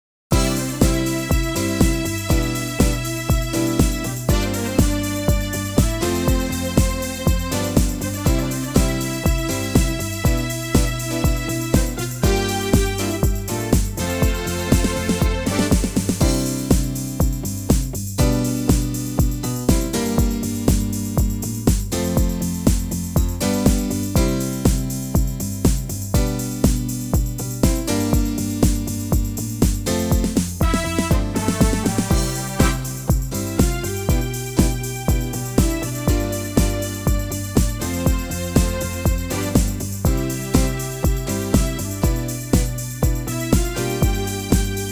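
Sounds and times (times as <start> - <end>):
live backing track: 0.3 - 44.9.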